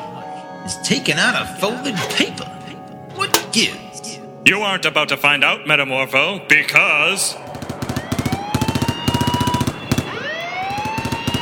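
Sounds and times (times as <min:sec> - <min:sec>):
speech: 0:00.6 - 0:02.6, 0:03.6 - 0:03.8, 0:04.4 - 0:07.5
machine-gun fire: 0:07.5 - 0:11.3.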